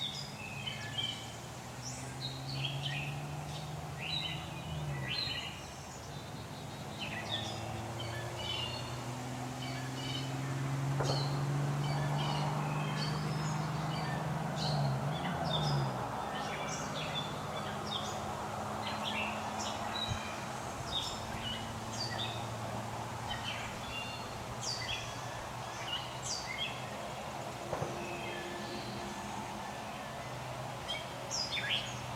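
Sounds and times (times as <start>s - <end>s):
fledgling blue jays chirping: 0.0s - 32.1s.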